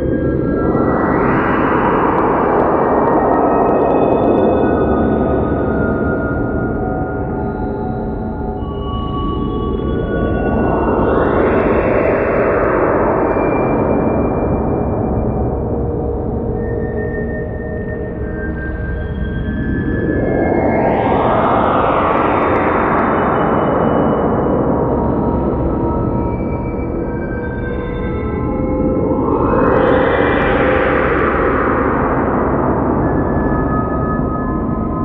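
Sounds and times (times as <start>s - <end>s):
vintage fantasy sci-fi vortex drone: 0.0s - 35.0s.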